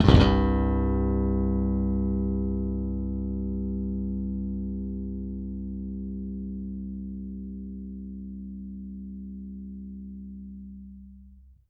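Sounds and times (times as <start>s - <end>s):
long slap bass one shot: 0.0s - 11.6s.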